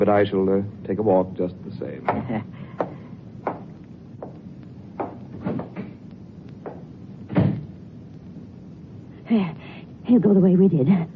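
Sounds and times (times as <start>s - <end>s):
speech: 0.0s - 2.6s, 9.3s - 11.1s
wooden knocks and thumps: 2.8s - 4.4s, 5.0s - 6.0s
door shutting: 5.0s - 6.0s, 7.3s - 7.7s.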